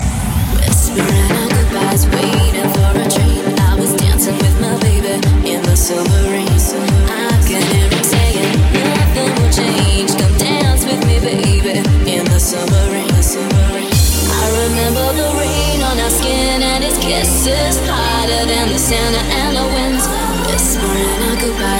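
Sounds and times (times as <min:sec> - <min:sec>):
dance music: 0:00.0 - 0:21.7.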